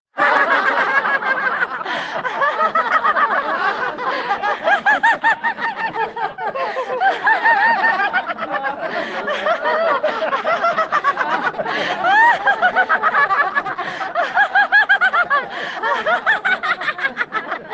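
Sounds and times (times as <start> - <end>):
laughter yoga laughing: 0.2 - 17.7.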